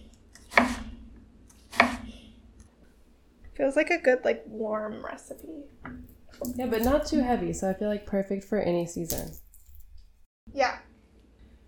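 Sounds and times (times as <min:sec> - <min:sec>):
knife dicing an onion on a cutting board: 0:00.4 - 0:00.9, 0:01.6 - 0:02.1
speech: 0:03.6 - 0:09.4.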